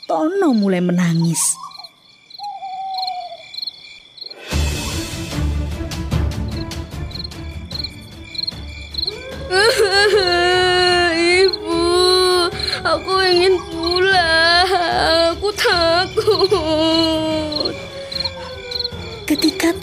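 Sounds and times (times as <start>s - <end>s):
kolik birds calling in a night forest: 0.0s - 4.5s, 6.6s - 19.8s
insects chirping in a night forest: 0.0s - 19.8s
speech: 0.1s - 1.7s
owl hooting in a night forest: 1.2s - 4.4s, 10.5s - 19.8s.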